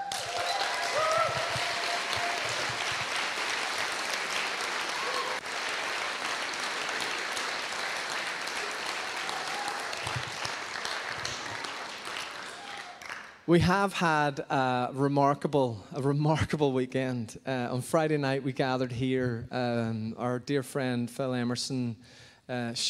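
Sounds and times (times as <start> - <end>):
audience applause: 0.0 - 13.4
speech: 13.5 - 22.8.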